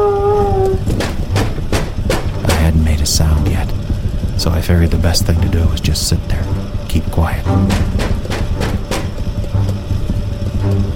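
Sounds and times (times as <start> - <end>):
steady low rumble: 0.0 - 10.9
knocking on a door: 0.8 - 2.8, 7.6 - 9.2
speech: 4.8 - 8.0.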